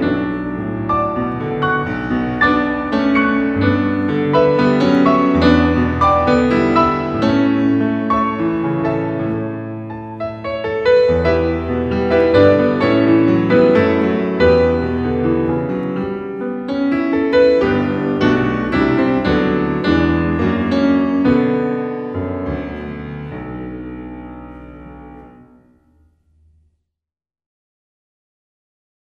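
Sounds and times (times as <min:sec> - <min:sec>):
pasillo in B minor: 0:00.0 - 0:22.1.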